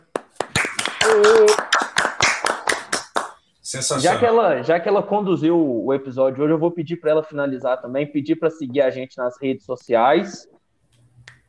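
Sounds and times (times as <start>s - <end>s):
round of hand clapping: 0.0s - 3.4s
high voiced whoop: 1.0s - 1.7s
speech: 3.7s - 10.6s.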